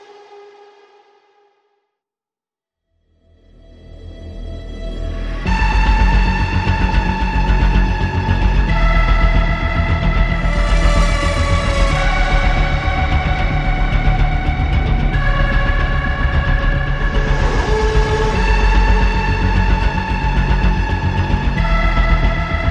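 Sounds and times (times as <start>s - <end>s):
synthesizers: 3.7s - 22.6s
vocals: 4.8s - 22.6s.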